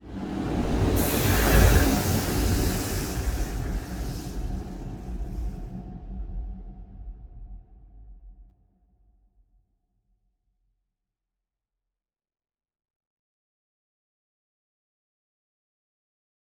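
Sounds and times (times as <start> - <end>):
juggernaut ship moving: 0.1 - 5.7.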